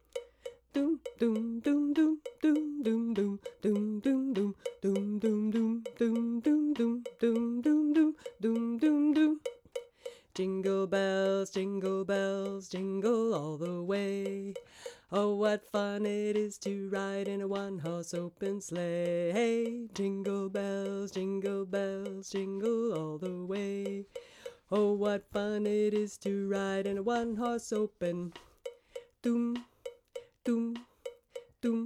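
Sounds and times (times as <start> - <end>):
mezzo-alto singing: 0.0 - 31.8.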